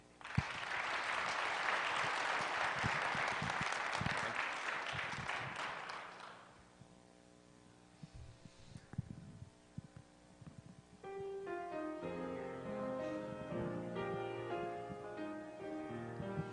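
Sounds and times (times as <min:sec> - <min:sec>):
faint hum: 0:00.0 - 0:16.5
audience applauding to welcome two visiting musicians: 0:00.2 - 0:06.6.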